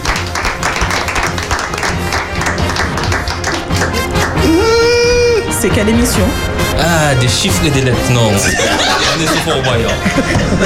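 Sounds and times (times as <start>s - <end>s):
crowd applauding: 0.0s - 5.4s
laughter: 3.8s - 5.6s, 8.1s - 10.6s
speech: 5.6s - 10.6s.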